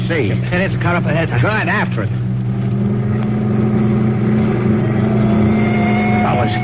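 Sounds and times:
milk truck engine driven in a chase: 0.0 - 6.6
speech: 0.1 - 2.3.

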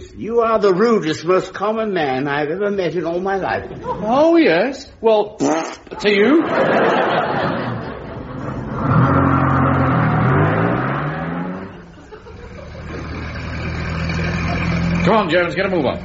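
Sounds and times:
speech: 0.2 - 7.4, 15.1 - 16.0
laughter: 3.5 - 4.3, 6.0 - 8.8, 11.7 - 13.3
old car engine running and revving: 8.2 - 16.0.

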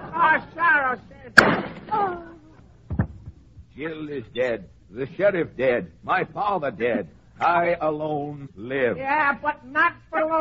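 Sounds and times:
speech: 0.3 - 2.3, 3.8 - 10.3
gunshot: 1.4 - 2.0.

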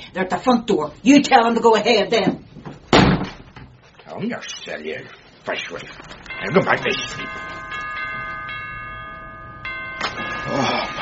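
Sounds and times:
speech: 0.1 - 2.5, 4.2 - 7.6
doorbell ringing: 6.2 - 11.0.

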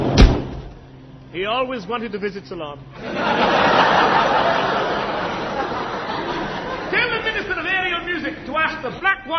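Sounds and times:
door opening and closing: 0.1 - 0.8
sharp knock: 0.2 - 0.7
speech: 1.4 - 4.7, 8.3 - 9.3
laughter: 2.9 - 7.9.

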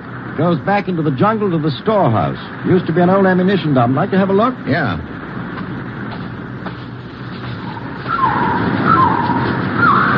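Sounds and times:
steady noise: 0.0 - 10.1
speech: 0.4 - 5.4
soldier whistling an imitation of a bird call: 7.6 - 10.1.

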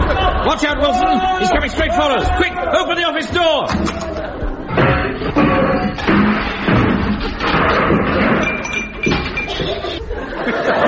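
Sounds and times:
laughter: 0.0 - 2.2, 9.1 - 10.8
speech: 0.5 - 4.1
bicycle crashing into an office: 4.7 - 10.1
clinking glass and metal: 8.1 - 10.0.

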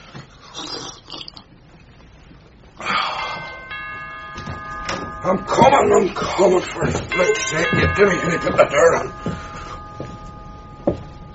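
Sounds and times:
doorbell ringing: 3.2 - 11.3
speech: 5.3 - 9.3.

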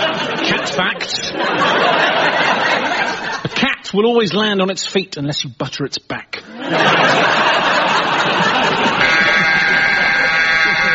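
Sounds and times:
laughter: 0.0 - 3.6, 6.4 - 10.9
speech: 0.8 - 2.4, 3.9 - 8.4
long game-show buzzer: 8.7 - 10.9.

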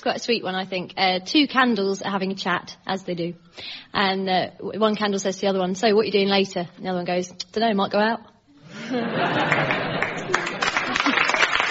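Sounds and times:
speech: 0.0 - 9.9
laughter: 8.7 - 11.6
half-hearted clapping: 9.4 - 11.6.

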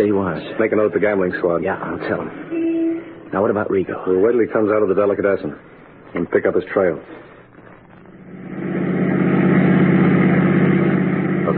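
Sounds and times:
speech: 0.0 - 2.7, 3.3 - 7.3
car engine running: 8.0 - 11.5.

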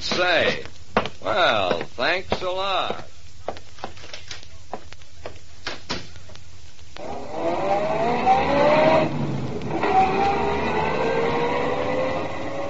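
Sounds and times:
speech: 0.2 - 3.1
car engine accelerating: 7.0 - 12.6
road noise: 7.1 - 12.6.

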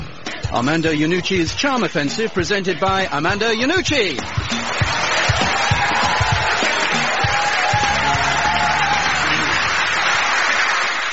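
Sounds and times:
speech: 0.5 - 5.0
studio audience applause: 4.2 - 11.1.

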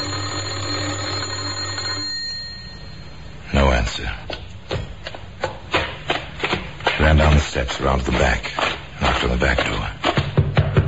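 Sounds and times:
electric doorbell buzzing: 0.0 - 3.4
faint hum: 0.0 - 10.8
speech: 3.8 - 4.4, 7.0 - 10.0.

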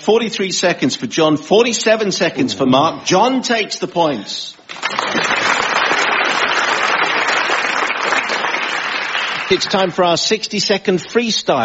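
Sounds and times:
speech: 0.0 - 5.3, 9.5 - 11.6
audience applause at the close of a comedy round: 4.7 - 10.0.

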